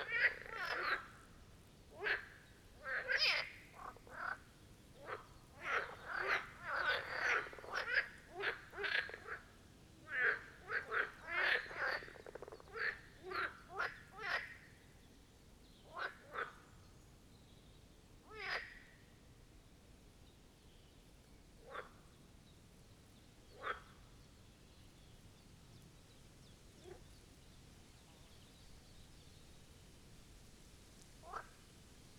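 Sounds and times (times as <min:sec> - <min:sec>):
marsh frogs croaking in chorus: 0:00.0 - 0:14.7, 0:15.9 - 0:16.7, 0:18.3 - 0:18.9, 0:21.6 - 0:22.1, 0:23.5 - 0:24.2, 0:31.2 - 0:31.6.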